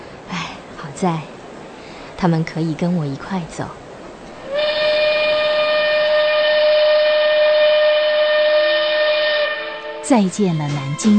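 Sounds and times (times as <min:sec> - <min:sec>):
moving train rumbling: 0:00.0 - 0:11.1
speech: 0:01.0 - 0:01.3, 0:02.2 - 0:03.8, 0:10.1 - 0:11.1
train whistle: 0:04.4 - 0:11.1.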